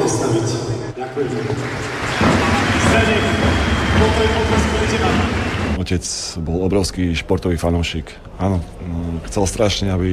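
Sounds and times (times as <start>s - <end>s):
speech: 1.0s - 2.1s, 5.9s - 10.1s
audience applause: 1.1s - 5.8s.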